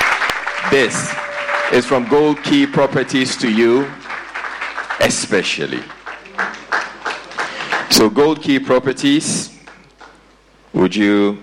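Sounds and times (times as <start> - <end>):
audience applause: 0.0 - 8.1
speech: 0.6 - 4.0, 5.0 - 6.0, 8.0 - 9.5, 10.8 - 11.4.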